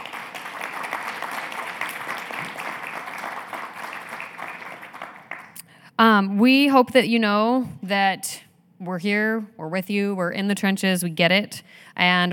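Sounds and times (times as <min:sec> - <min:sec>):
audience applause: 0:00.0 - 0:05.6
speech: 0:06.0 - 0:12.3.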